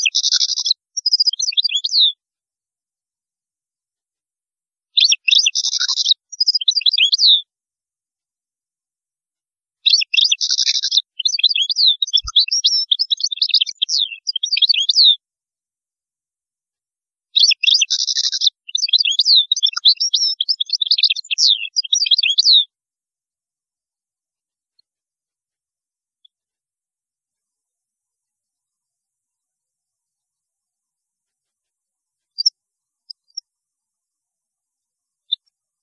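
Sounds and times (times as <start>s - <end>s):
European goldfinch singing: 0.0s - 2.2s, 5.0s - 7.5s, 9.8s - 15.2s, 17.4s - 22.7s, 32.3s - 32.5s.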